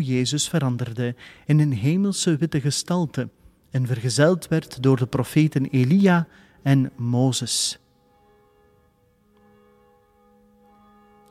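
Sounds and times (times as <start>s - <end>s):
speech: 0.0s - 7.8s
church tower bell Jacobus ringing: 7.0s - 11.2s.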